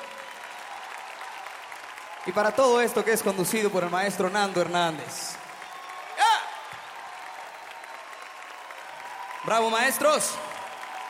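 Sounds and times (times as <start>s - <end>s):
crowd applause for an orchestra: 0.0s - 11.0s
speech: 2.2s - 5.4s, 9.5s - 10.5s.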